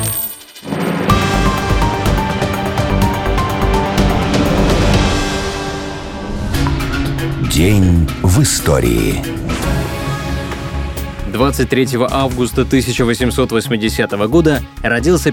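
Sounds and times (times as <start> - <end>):
coins clinking and jingling: 0.0 - 0.7
dense loud musical bed: 1.1 - 12.8
speech: 7.6 - 9.8, 11.4 - 15.3.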